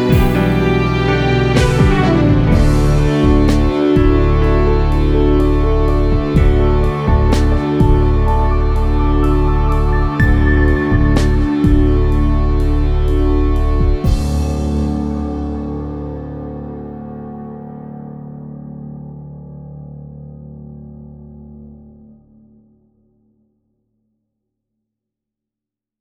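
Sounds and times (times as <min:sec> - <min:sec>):
sweet strings: 0:00.0 - 0:17.2.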